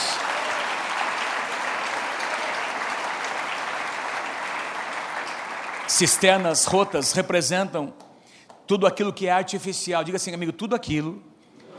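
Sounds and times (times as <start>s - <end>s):
audience applause: 0.0s - 7.0s
speech: 5.9s - 8.1s, 8.7s - 11.3s.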